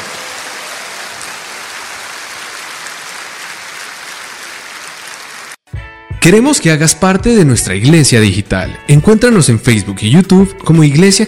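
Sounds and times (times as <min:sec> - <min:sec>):
audience applauding: 0:00.0 - 0:05.7
speech: 0:06.2 - 0:11.2.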